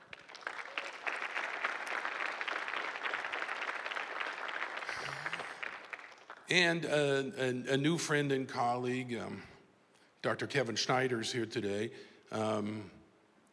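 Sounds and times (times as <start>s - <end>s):
audience applause welcoming someone at a talk: 0.0s - 6.4s
speech: 6.5s - 9.5s, 10.2s - 13.0s.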